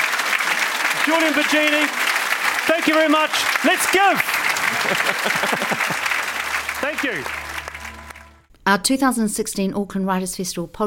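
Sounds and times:
audience applause: 0.0 - 8.5
speech: 1.0 - 2.0, 2.7 - 6.1, 6.8 - 7.4, 8.7 - 10.8
laughter: 1.0 - 7.4.

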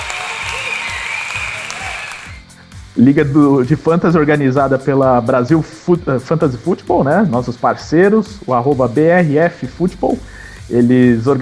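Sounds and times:
applause: 0.0 - 2.4
speech: 3.0 - 11.4.

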